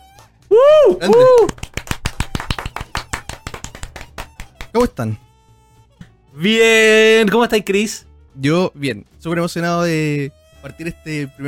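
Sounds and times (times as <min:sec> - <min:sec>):
vocal whoops: 0:00.5 - 0:01.6
small group hand clapping: 0:00.9 - 0:04.9
speech: 0:01.0 - 0:01.6, 0:04.8 - 0:05.3, 0:06.4 - 0:11.4.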